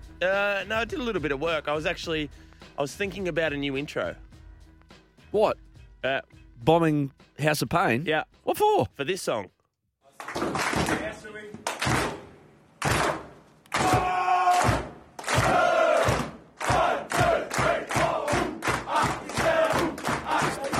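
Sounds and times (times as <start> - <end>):
speech: 0.2 - 4.2, 5.3 - 9.6
crowd chanting and shouting in a sports team's change rooms: 11.8 - 20.7.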